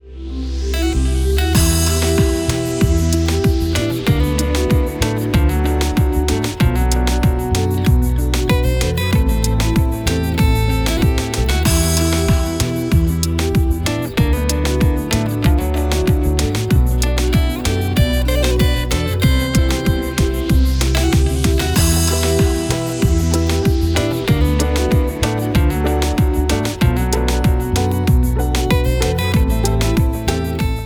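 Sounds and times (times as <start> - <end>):
reggaeton music: 0.0 - 30.8.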